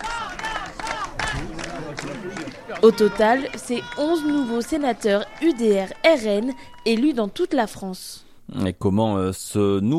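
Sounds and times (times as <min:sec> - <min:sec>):
party activists cheering: 0:00.0 - 0:07.8
speech: 0:02.2 - 0:09.9.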